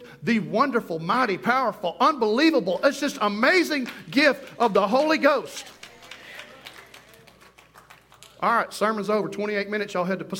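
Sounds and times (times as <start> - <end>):
speech: 0.2 - 5.8, 8.4 - 10.3
audience applauding: 4.5 - 8.5.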